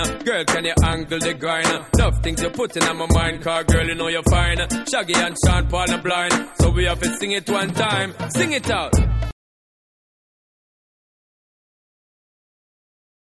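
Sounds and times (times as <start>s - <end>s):
dancehall version music: 0.0s - 9.4s.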